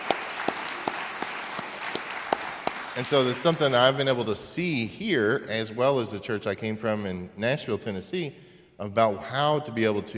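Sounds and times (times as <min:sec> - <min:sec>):
church congregation applauding: 0:00.0 - 0:04.3
speech: 0:03.0 - 0:10.1.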